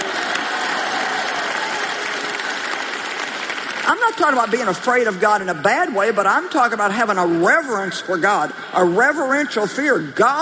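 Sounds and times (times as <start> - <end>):
audience applause: 0.0 - 4.8
speech: 3.9 - 10.3.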